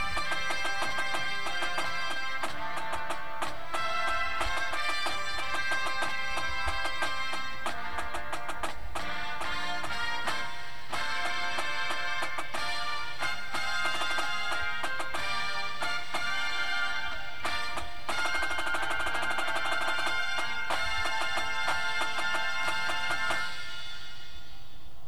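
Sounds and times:
drumline snare drum: 0.0s - 24.6s
music: 0.0s - 25.0s.

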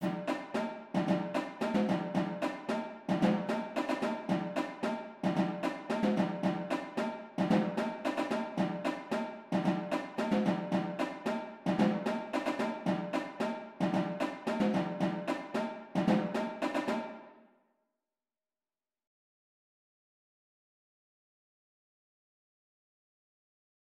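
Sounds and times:
drumline: 0.0s - 17.1s.

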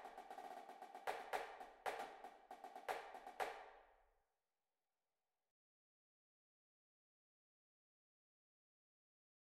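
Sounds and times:
snare drum: 0.0s - 3.8s.

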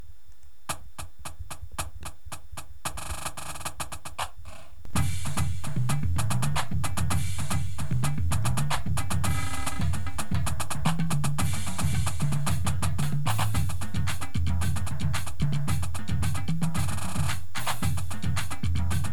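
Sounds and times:
full drumline playing: 5.0s - 19.1s.

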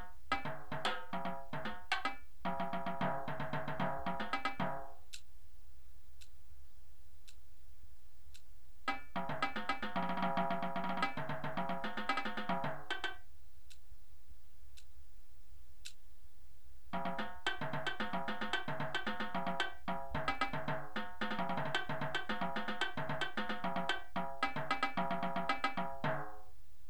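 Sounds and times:
tenor drums: 0.0s - 5.3s, 8.3s - 13.8s, 16.9s - 26.5s.

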